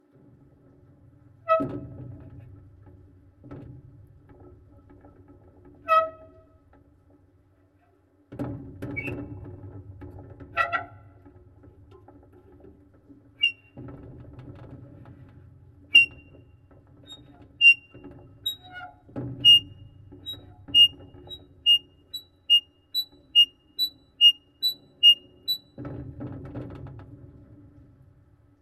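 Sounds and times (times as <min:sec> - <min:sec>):
squeaking metal piezo: 0:13.4 - 0:13.8, 0:15.9 - 0:25.8.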